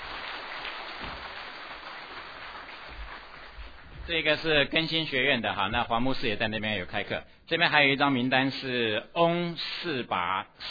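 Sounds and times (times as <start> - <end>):
audience applause: 0.0 - 4.6
speech: 4.1 - 10.6.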